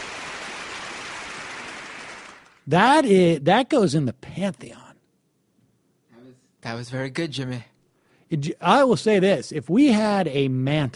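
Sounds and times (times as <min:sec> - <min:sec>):
applause: 0:00.0 - 0:02.7
speech: 0:02.7 - 0:04.9, 0:06.6 - 0:07.7, 0:08.3 - 0:10.9.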